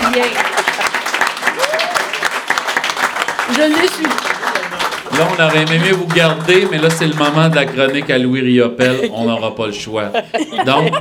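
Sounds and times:
audience applause: 0.0s - 8.2s
speech: 0.2s - 0.9s, 3.5s - 4.3s, 5.1s - 10.9s
laughter: 8.7s - 10.9s.

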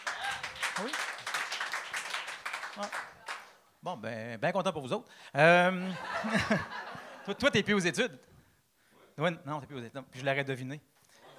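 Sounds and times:
scattered clapping from a small group: 0.0s - 3.6s
speech: 0.8s - 1.1s, 2.8s - 3.1s, 3.8s - 8.3s, 9.2s - 10.9s
laughter: 5.7s - 7.5s, 11.1s - 11.3s.

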